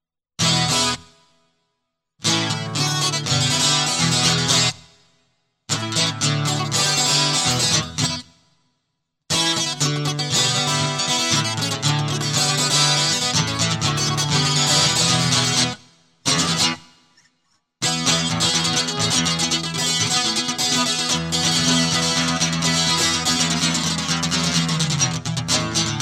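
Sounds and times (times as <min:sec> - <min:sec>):
high speed guitar loop: 0:02.3 - 0:04.8, 0:05.7 - 0:08.2, 0:09.3 - 0:16.8, 0:17.8 - 0:26.0.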